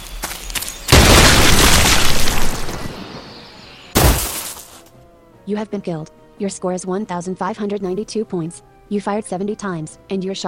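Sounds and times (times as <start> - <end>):
land mine explosion in a video game: 0.9 - 4.5
speech: 5.5 - 10.4.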